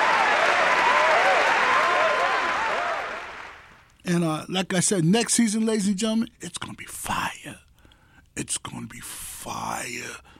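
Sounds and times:
audience applause: 0:00.0 - 0:03.8
speech: 0:04.1 - 0:07.6, 0:08.4 - 0:10.3.

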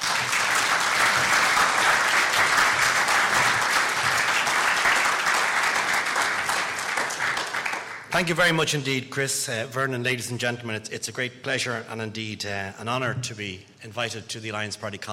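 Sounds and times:
audience applause at the Alliance Party Conference welcoming a Minister of State: 0:00.0 - 0:08.1
speech: 0:08.2 - 0:15.1.

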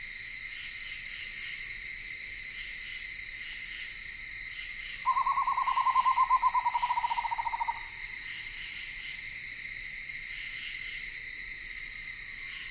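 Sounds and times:
insects in Ithaca New York: 0:00.0 - 0:12.7
screech owl calling in Ithaca New York: 0:05.1 - 0:08.0.

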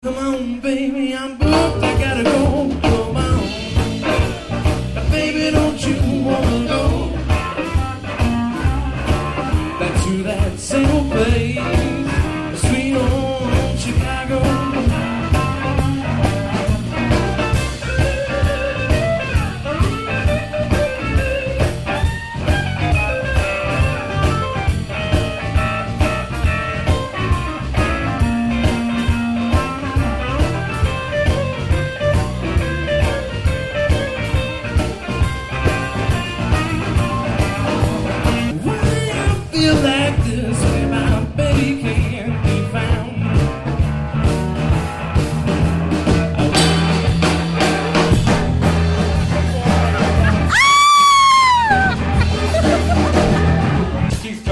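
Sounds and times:
blues band playing at a barbecue: 0:00.0 - 0:54.5
laughter: 0:49.6 - 0:53.8.

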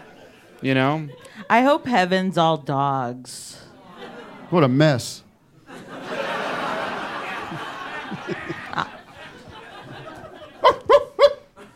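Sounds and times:
crowd laughter and chatter: 0:00.0 - 0:01.5, 0:03.7 - 0:04.9, 0:05.5 - 0:11.7
speech: 0:00.6 - 0:03.7, 0:04.5 - 0:05.2.

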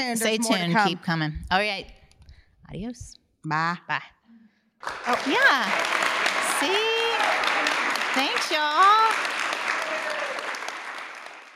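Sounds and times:
speech: 0:00.0 - 0:02.0, 0:02.7 - 0:04.2, 0:04.8 - 0:06.0, 0:06.6 - 0:07.0, 0:08.2 - 0:09.4
live audience applauding: 0:04.8 - 0:11.5.

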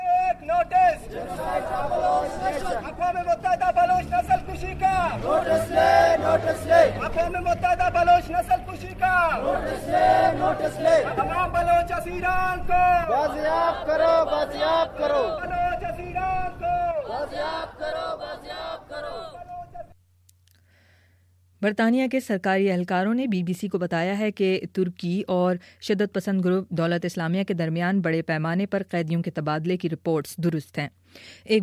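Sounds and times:
rally crowd chanting slogans marching through the streets of Quetta for missing persons: 0:00.7 - 0:19.9
speech: 0:21.6 - 0:31.6.

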